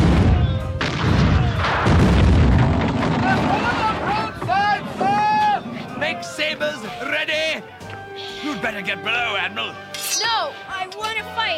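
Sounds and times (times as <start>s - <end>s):
people shouting: 0.0s - 1.7s, 3.2s - 6.2s
cannons firing in a naval battle: 0.0s - 6.0s
speech: 8.6s - 11.5s.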